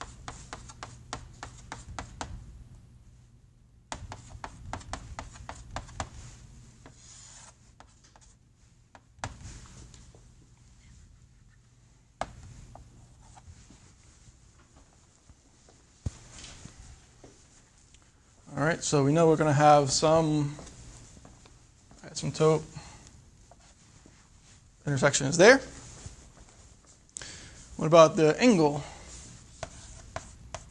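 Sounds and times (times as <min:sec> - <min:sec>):
pen or chalk scratching writing out a math calculation: 0:00.0 - 0:02.3, 0:03.9 - 0:08.4, 0:29.1 - 0:30.6
speech: 0:18.7 - 0:20.6, 0:22.4 - 0:22.8, 0:24.9 - 0:25.8, 0:27.8 - 0:28.9.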